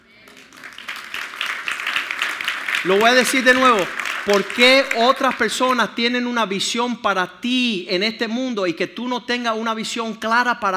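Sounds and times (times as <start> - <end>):
audience applause: 0.3 - 5.8
speech: 2.8 - 10.7.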